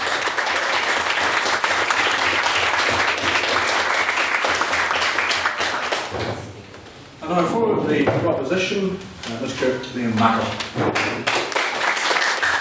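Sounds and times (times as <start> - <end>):
audience applause: 0.0 - 6.1, 11.0 - 12.6
speech: 7.4 - 11.4.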